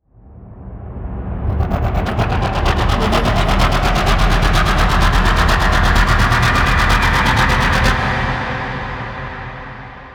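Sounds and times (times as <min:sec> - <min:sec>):
layered nightmare horror riser: 0:01.3 - 0:08.7.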